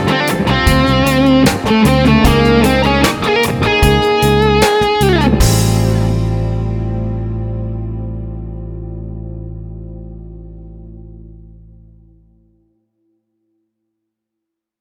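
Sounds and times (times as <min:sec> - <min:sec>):
band playing: 0:00.0 - 0:07.8
modern lead electric guitar dry and wet: 0:00.0 - 0:12.6.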